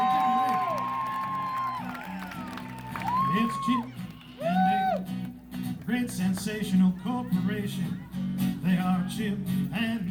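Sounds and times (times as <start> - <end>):
audience clapping and cheering: 0.0 - 6.5
speech: 6.1 - 10.0.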